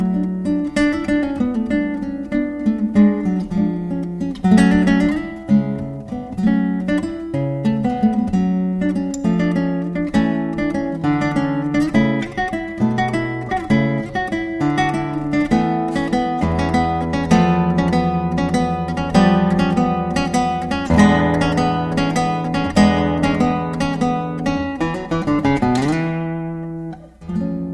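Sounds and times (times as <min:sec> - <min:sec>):
classical guitar: 0:00.0 - 0:27.7.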